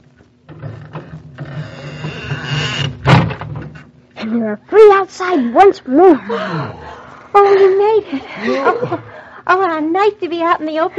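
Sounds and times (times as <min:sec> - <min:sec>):
squeaky door opening: 0:00.6 - 0:03.5
speech: 0:04.3 - 0:06.8, 0:07.4 - 0:10.9
laughter: 0:07.5 - 0:09.3.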